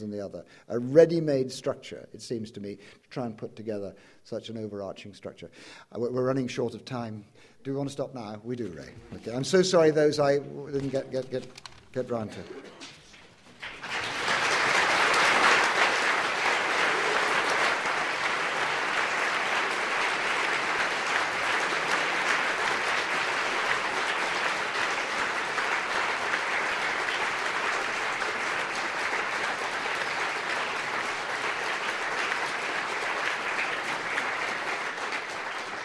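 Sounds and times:
speech: 0:00.0 - 0:13.0
audience applause: 0:13.5 - 0:35.8.

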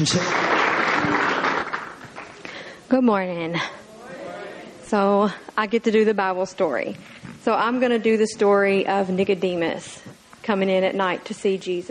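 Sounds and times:
speech: 0:00.0 - 0:01.2, 0:02.9 - 0:03.8, 0:04.9 - 0:11.8
audience hand clapping: 0:00.0 - 0:02.4.

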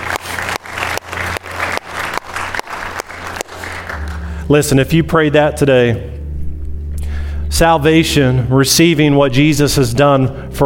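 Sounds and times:
large church audience applauding: 0:00.0 - 0:04.5
speech: 0:04.5 - 0:06.2, 0:07.5 - 0:10.6.

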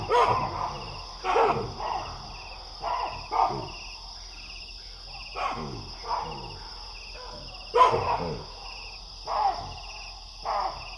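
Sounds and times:
baboon barking: 0:00.0 - 0:03.8, 0:05.3 - 0:10.9
insects chirping: 0:00.0 - 0:10.9.

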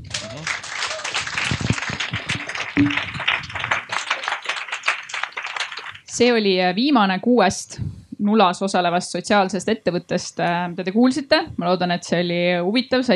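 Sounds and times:
audience applause: 0:00.0 - 0:06.1
speech: 0:02.8 - 0:03.1, 0:06.2 - 0:13.1.

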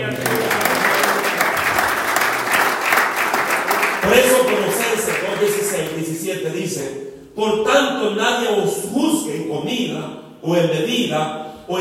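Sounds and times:
audience applause: 0:00.0 - 0:06.1
speech: 0:05.8 - 0:11.8.

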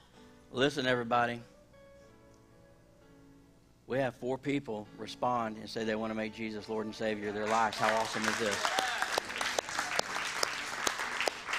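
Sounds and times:
speech: 0:00.5 - 0:01.5, 0:03.9 - 0:08.8
audience clapping: 0:07.2 - 0:11.5.

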